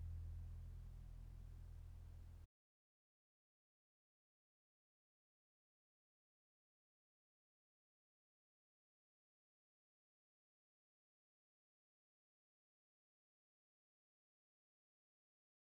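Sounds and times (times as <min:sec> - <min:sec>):
walking bass line on all four strings: 0:00.0 - 0:02.4.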